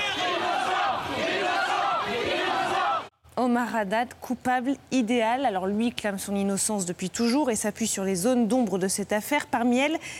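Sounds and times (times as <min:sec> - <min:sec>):
crowd outside chanting innocent: 0:00.0 - 0:03.1
speech: 0:03.4 - 0:10.1.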